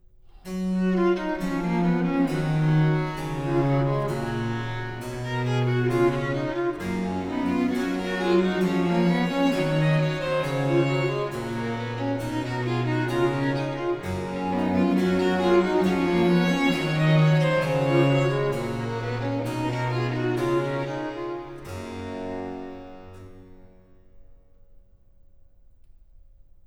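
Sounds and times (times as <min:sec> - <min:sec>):
harpsichord solo playing canons: 0:00.8 - 0:23.8.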